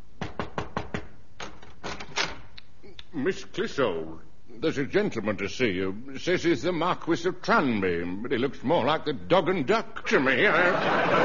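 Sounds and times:
knocking on a door: 0:00.2 - 0:01.2
speech: 0:03.1 - 0:11.2
laughter: 0:10.2 - 0:11.2.

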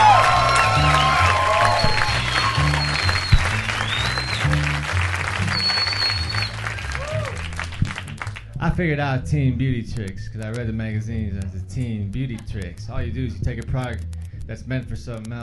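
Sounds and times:
comedy club audience applauding: 0:00.0 - 0:08.5
speech: 0:08.8 - 0:15.4.

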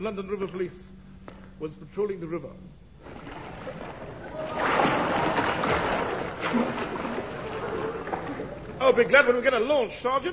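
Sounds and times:
speech: 0:00.0 - 0:01.0, 0:01.6 - 0:04.1, 0:08.8 - 0:10.3
splashing of people swimming in a river: 0:03.0 - 0:08.9.

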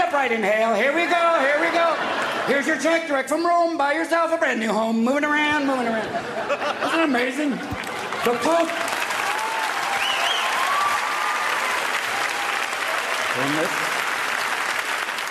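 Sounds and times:
speech: 0:00.1 - 0:08.9, 0:13.4 - 0:13.8
laughter: 0:00.4 - 0:03.4, 0:05.7 - 0:09.2
crowd applauding: 0:07.6 - 0:15.2
voices calling out and whooping: 0:09.1 - 0:13.2.

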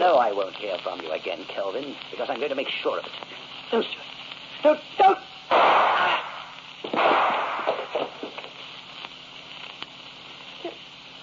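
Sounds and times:
speech: 0:00.0 - 0:05.2
gunshots in an old radio murder drama: 0:05.5 - 0:08.4.

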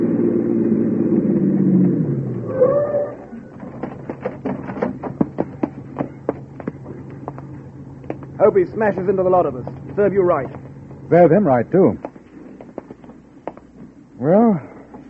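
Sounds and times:
car engine pulling up and parking: 0:00.0 - 0:14.0
brief squeal as the vehicle stops: 0:02.4 - 0:03.5
speech: 0:08.4 - 0:12.0, 0:14.2 - 0:14.7.

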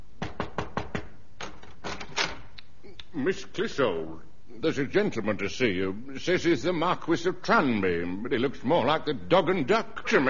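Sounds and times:
knock on a dressing room door: 0:00.2 - 0:01.2
speech: 0:03.1 - 0:10.2.

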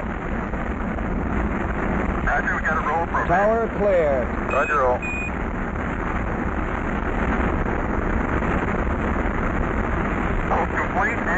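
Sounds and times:
Apollo 11 rocket engines roaring at liftoff: 0:00.0 - 0:11.3
speech: 0:03.2 - 0:05.4, 0:11.0 - 0:11.3.

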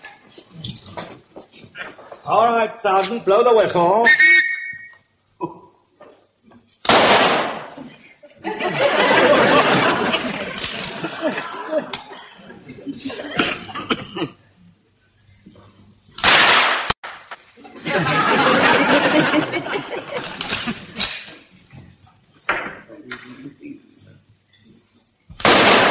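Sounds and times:
speech: 0:02.3 - 0:04.3
rifle shots fired on a range: 0:06.9 - 0:07.8, 0:16.2 - 0:17.2, 0:25.4 - 0:25.9
laughter: 0:07.8 - 0:14.4, 0:17.6 - 0:21.6.

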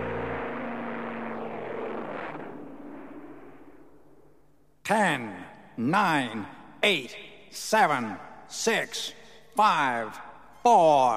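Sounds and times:
airplane taking off from a runway with engine roar: 0:00.0 - 0:03.2
speech: 0:04.9 - 0:11.1.

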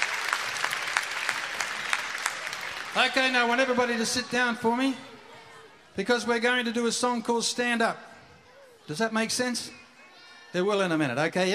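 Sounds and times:
audience burst of applause: 0:00.0 - 0:04.6
speech: 0:02.9 - 0:05.1, 0:06.0 - 0:08.1, 0:08.9 - 0:09.8, 0:10.5 - 0:11.5.

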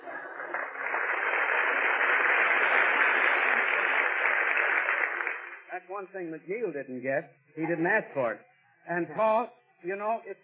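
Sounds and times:
studio audience applause: 0:00.0 - 0:05.8
speech: 0:05.8 - 0:10.4.

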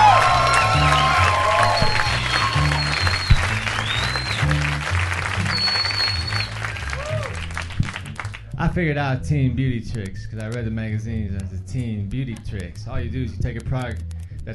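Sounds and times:
whoops and cheers: 0:00.0 - 0:04.6, 0:05.4 - 0:07.5
crowd applause: 0:00.0 - 0:08.4
low rhythmic bass line: 0:00.0 - 0:14.5
speech: 0:08.8 - 0:14.5.

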